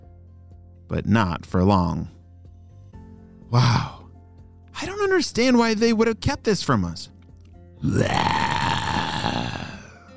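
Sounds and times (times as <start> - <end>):
speech: 0.9 - 2.2, 3.5 - 4.0, 5.2 - 7.2, 7.8 - 8.4
Nile crocodile growling: 7.8 - 10.0.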